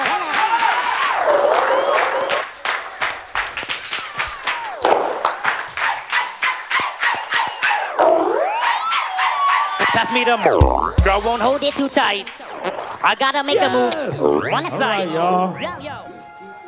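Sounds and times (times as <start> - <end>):
crowd clapping in rhythm: 0.0 - 12.4
speech: 10.1 - 12.4, 13.0 - 16.1.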